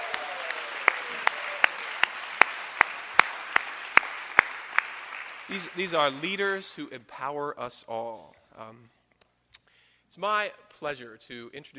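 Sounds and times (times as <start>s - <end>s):
audience applause: 0.0s - 6.8s
speech: 5.5s - 9.0s, 10.1s - 11.7s.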